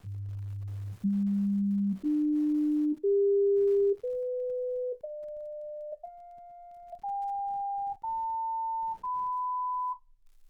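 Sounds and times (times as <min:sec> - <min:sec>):
sine tones: 0:00.0 - 0:10.1.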